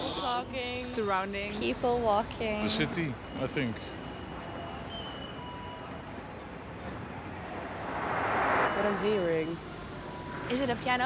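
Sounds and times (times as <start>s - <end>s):
dense city traffic noise: 0.0s - 11.0s
speech: 0.4s - 4.0s, 8.9s - 9.7s, 10.5s - 11.0s
tram rumbling past: 7.1s - 11.0s.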